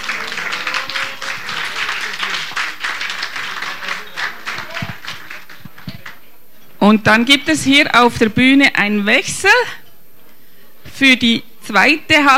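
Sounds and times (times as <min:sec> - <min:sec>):
audience applause: 0:00.0 - 0:06.3
speech: 0:06.9 - 0:09.8, 0:11.0 - 0:12.3.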